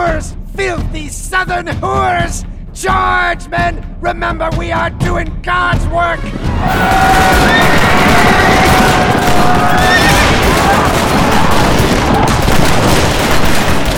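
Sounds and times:
speech: 0.2 - 10.0
gunfire volley: 6.7 - 13.9.

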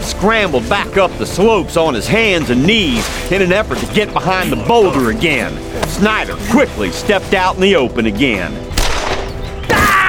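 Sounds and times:
speech: 0.2 - 8.7
gunshot sound effect in a western audiobook shootout: 8.7 - 9.9.

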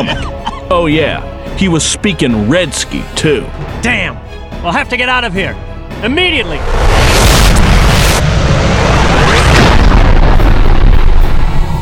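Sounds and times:
speech: 0.0 - 7.4
Russian bombs blast: 6.6 - 11.7.

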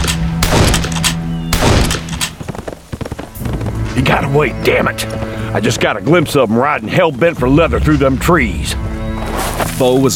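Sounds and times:
rifle shots: 0.0 - 3.2
speech: 4.0 - 8.9, 9.8 - 10.1.

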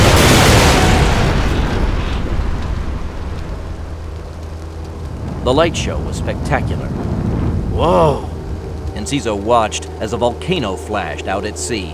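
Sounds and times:
heavy artillery fire and explosions: 0.0 - 7.8
speech: 5.5 - 7.2, 7.8 - 8.3, 9.0 - 11.9.

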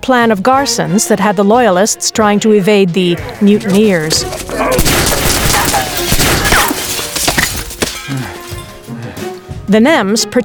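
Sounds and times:
speech: 0.0 - 4.9, 9.7 - 10.4
glass shattering: 4.1 - 8.9
gunshots: 4.2 - 7.7.

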